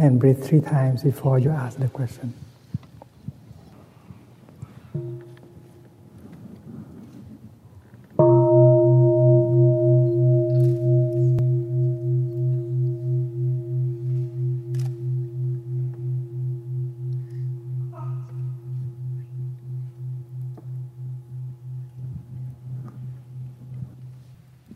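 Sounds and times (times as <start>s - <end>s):
speech: 0.0s - 2.5s
deep meditation bell ringing: 5.0s - 6.0s, 8.2s - 24.4s.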